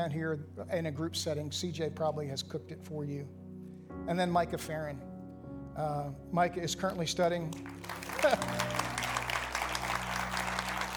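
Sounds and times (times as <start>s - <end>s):
speech: 0.0s - 5.1s, 5.8s - 9.1s
audience applause for graduates: 7.5s - 10.9s.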